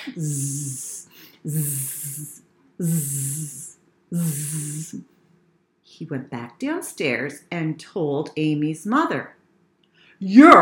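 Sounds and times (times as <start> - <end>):
person imitating snoring: 0.0 - 5.0
speech: 0.1 - 5.1, 5.9 - 9.4, 10.2 - 10.5.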